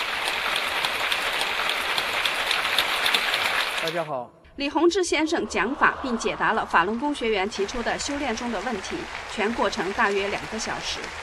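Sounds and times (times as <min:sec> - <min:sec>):
audience applause in a hall: 0:00.0 - 0:04.1, 0:07.4 - 0:11.2
speech: 0:03.8 - 0:11.2.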